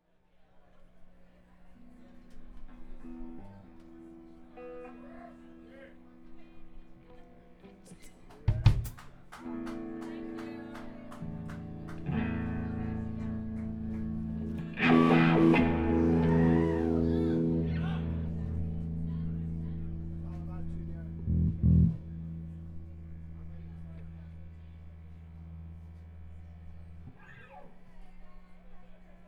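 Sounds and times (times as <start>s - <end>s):
instrument tuning: 11.2s - 23.8s.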